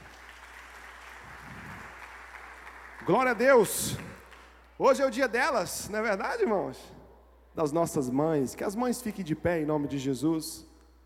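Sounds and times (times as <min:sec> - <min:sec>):
audience applauding: 0:00.0 - 0:04.7
speech: 0:03.1 - 0:04.1, 0:04.8 - 0:07.0, 0:07.6 - 0:10.7.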